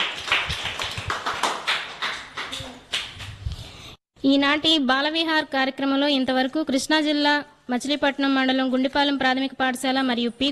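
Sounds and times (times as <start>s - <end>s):
small group applauding schoolchildren from Gundipalem primary schools in Machilipatnam: 0.0s - 3.4s
speech: 4.2s - 10.5s.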